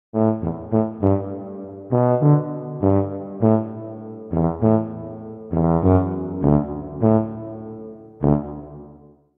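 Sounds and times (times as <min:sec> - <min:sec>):
tuba: 0:00.1 - 0:09.3.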